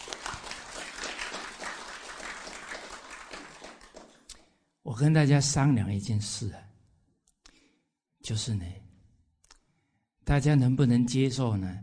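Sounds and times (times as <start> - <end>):
crowd applauding: 0.0 - 4.3
speech: 4.9 - 6.7, 8.3 - 8.8, 10.3 - 11.8.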